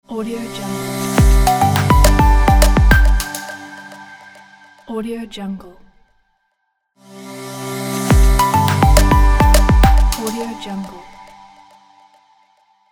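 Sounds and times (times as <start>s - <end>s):
minimal audio logo: 0.5s - 4.9s, 7.4s - 10.6s.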